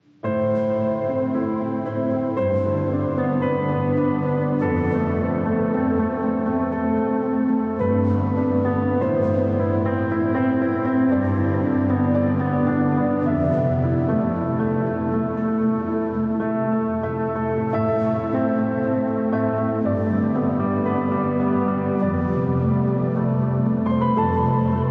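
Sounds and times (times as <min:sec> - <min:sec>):
emotional piano: 0:00.0 - 0:24.9.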